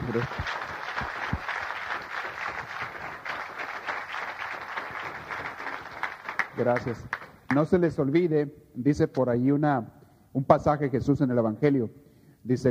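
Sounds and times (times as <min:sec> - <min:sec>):
audience applauding: 0:00.0 - 0:07.7
speech: 0:00.2 - 0:00.7, 0:06.6 - 0:12.6.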